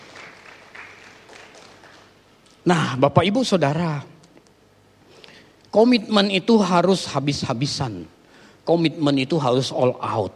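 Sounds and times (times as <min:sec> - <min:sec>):
audience clapping: 0:00.0 - 0:02.2
speech: 0:02.6 - 0:04.1, 0:05.8 - 0:10.3.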